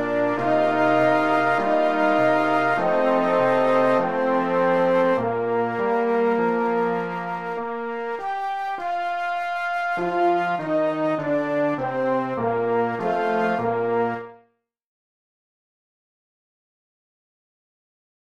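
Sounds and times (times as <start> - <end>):
Christmas song: 0.0 - 14.3.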